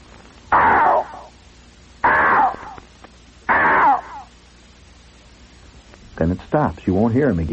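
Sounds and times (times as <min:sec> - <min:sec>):
voice imitating a strange bird call: 0:00.5 - 0:01.3, 0:02.0 - 0:02.8, 0:03.5 - 0:04.3
speech: 0:06.2 - 0:07.5.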